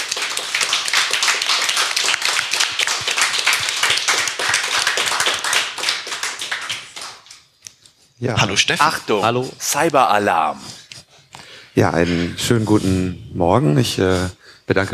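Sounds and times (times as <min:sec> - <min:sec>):
crowd applauding: 0:00.0 - 0:07.4
speech: 0:08.2 - 0:10.7, 0:11.8 - 0:14.9.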